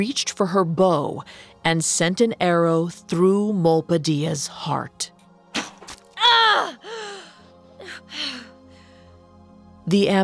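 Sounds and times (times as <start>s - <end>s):
speech: 0.0s - 5.1s, 9.9s - 10.2s
woman gasping and groaning as she dies: 6.1s - 9.0s
woman's breathy moans: 6.2s - 8.6s.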